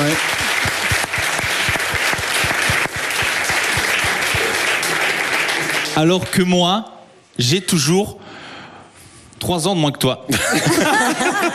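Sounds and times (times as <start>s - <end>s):
audience applause: 0.0s - 6.4s
speech: 6.0s - 8.2s, 9.4s - 11.5s
laughter: 10.3s - 11.5s.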